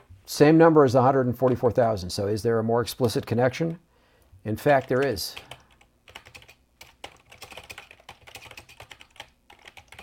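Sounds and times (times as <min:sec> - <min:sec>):
speech: 0:00.3 - 0:05.6
typing on a computer keyboard: 0:04.7 - 0:10.0.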